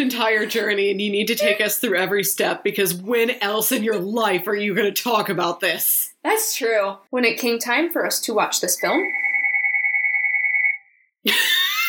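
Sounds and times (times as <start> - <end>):
speech: 0.0 - 9.2, 11.2 - 11.6
telephone ringing: 9.1 - 11.0.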